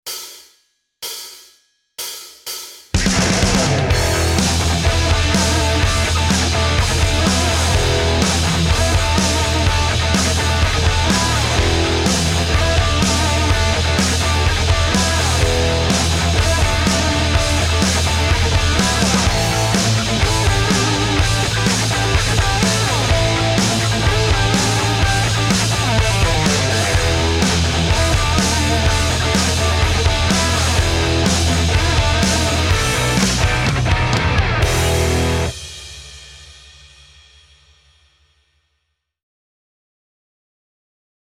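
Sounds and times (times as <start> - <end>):
blues guitar backing: 3.2 - 35.5.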